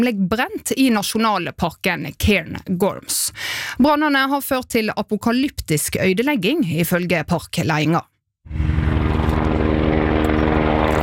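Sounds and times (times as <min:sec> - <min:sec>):
speech: 0:00.0 - 0:08.8
firefighting helicopter rotor-engine drone: 0:08.5 - 0:11.0.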